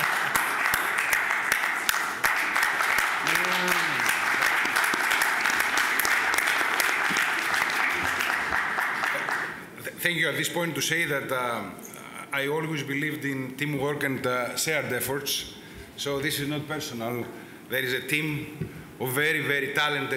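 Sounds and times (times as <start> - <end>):
audience applause: 0.0 - 9.7
speech: 10.0 - 20.1.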